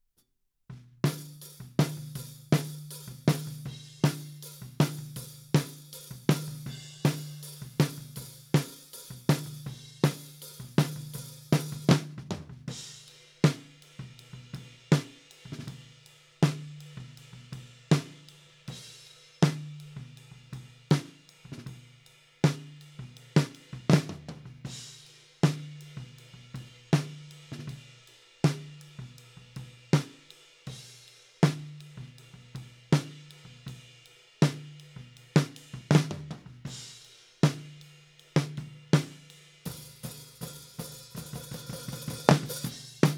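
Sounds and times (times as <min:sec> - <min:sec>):
snare drum recorded from the top: 0:01.0 - 0:13.8, 0:17.9 - 0:18.3, 0:18.9 - 0:20.0, 0:20.9 - 0:21.7, 0:23.4 - 0:26.0, 0:29.9 - 0:32.1, 0:32.9 - 0:33.3, 0:34.4 - 0:34.8, 0:35.4 - 0:37.8, 0:38.4 - 0:43.1.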